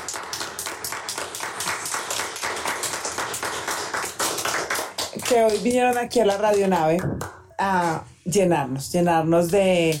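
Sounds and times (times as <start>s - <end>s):
audience applause: 0.0s - 5.8s
speech: 5.3s - 9.9s.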